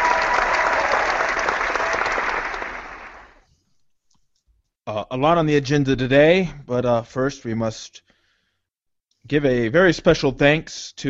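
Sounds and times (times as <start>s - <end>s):
crowd applause and cheering: 0.0s - 3.4s
speech: 5.1s - 8.1s, 9.2s - 11.0s.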